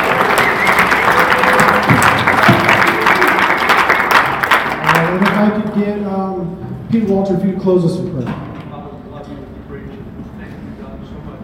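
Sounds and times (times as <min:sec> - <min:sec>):
audience applause: 0:00.0 - 0:05.7
speech: 0:06.9 - 0:08.4.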